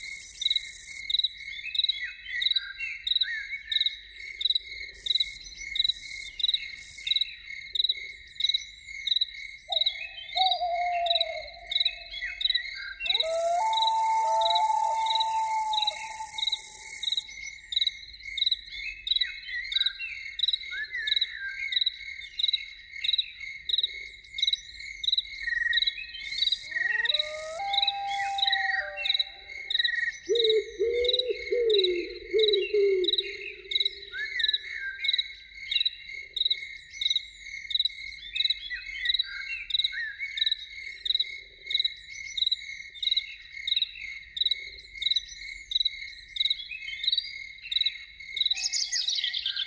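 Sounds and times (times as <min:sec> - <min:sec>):
pulsing cricket chorus: 0:00.0 - 0:49.6
loon wailing: 0:13.1 - 0:17.1, 0:26.7 - 0:29.8.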